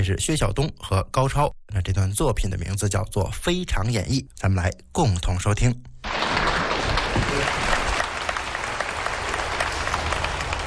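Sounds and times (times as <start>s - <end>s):
speech: 0.0s - 6.2s
audience applause: 6.1s - 10.6s.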